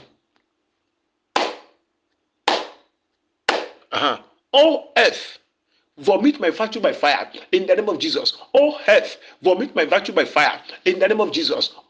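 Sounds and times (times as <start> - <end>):
hands slapping the ground: 1.4 - 1.8, 2.5 - 2.9, 3.5 - 3.8
speech: 3.9 - 5.4, 6.0 - 11.8.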